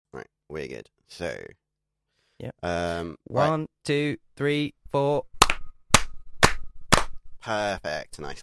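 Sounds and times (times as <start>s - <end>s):
speech: 0.1s - 1.6s, 2.4s - 5.3s, 7.4s - 8.4s
sharp hand claps: 5.4s - 7.2s.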